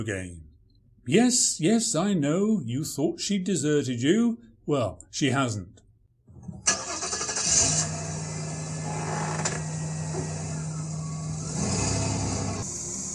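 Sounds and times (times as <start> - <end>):
speech: 0.0 - 0.4, 1.0 - 5.8
old car engine starting and idling: 6.4 - 13.1.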